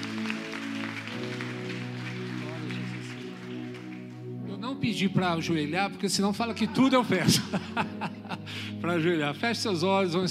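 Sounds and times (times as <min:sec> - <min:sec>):
audience applause: 0:00.0 - 0:04.4
speech: 0:04.8 - 0:10.2
laughter: 0:06.5 - 0:08.8.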